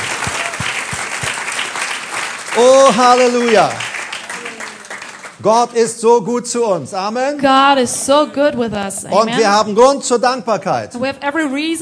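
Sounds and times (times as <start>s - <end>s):
church congregation applause during a service: 0.0s - 5.8s
speech: 2.6s - 3.9s, 5.4s - 11.8s.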